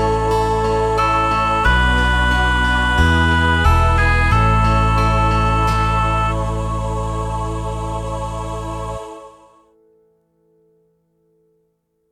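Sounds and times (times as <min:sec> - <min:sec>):
backing music: 0:00.0 - 0:09.3.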